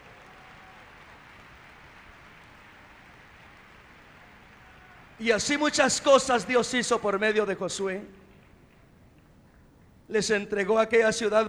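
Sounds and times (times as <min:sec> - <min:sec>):
audience applause: 0:00.0 - 0:05.9
speech: 0:05.2 - 0:08.2, 0:10.1 - 0:11.4.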